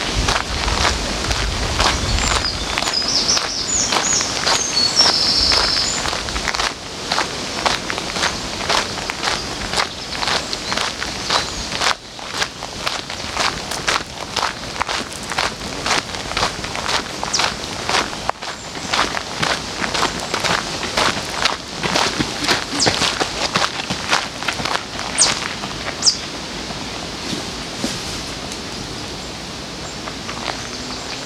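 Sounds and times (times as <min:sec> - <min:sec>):
footsteps crunching along a path by the river in Odense: 0:00.0 - 0:28.4, 0:29.9 - 0:31.2
birds chirping high above: 0:01.8 - 0:06.6, 0:08.2 - 0:15.8, 0:17.2 - 0:17.6, 0:18.2 - 0:26.4, 0:28.6 - 0:31.2.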